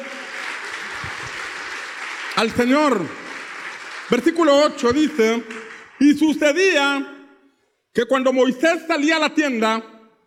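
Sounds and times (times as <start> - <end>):
audience applauding loudly: 0.0 - 6.5
speech: 2.4 - 3.2, 4.1 - 7.1, 8.0 - 9.9.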